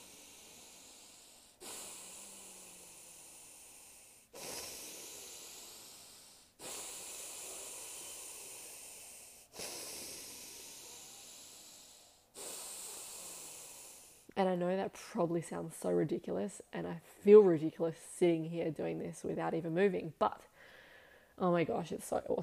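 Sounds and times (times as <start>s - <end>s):
nose breathing while walking: 0.0s - 14.4s, 20.5s - 21.4s
speech: 14.4s - 20.5s, 21.4s - 22.4s.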